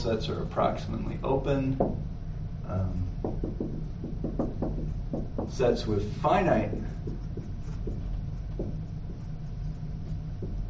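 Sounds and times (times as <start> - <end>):
speech: 0.0 - 7.2
low hum: 0.0 - 10.6
writing on a board: 3.2 - 5.7, 6.3 - 10.6.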